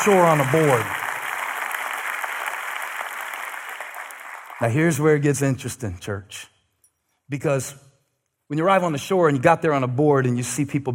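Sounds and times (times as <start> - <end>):
speech: 0.0 - 1.0, 4.6 - 6.5, 7.3 - 7.8, 8.5 - 10.9
audience clapping hands: 0.0 - 5.2.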